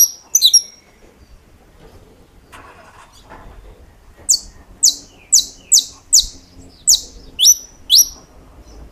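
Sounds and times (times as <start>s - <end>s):
saffron finch song: 0.0s - 8.9s.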